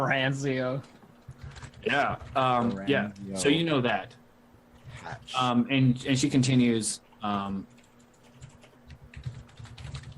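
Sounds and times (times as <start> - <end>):
speech: 0.0 - 1.0, 1.8 - 4.2, 4.9 - 7.8
keyboard typing as a name is written down: 1.2 - 3.3, 7.2 - 10.1.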